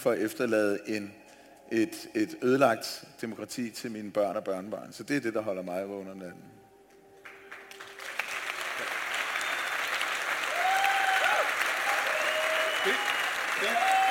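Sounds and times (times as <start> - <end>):
speech: 0.0 - 6.6, 12.8 - 13.0
audience applause: 7.5 - 14.0.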